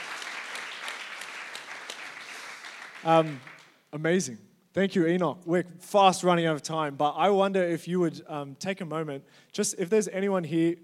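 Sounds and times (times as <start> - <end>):
audience clapping: 0.0 - 3.8
speech: 3.0 - 10.8.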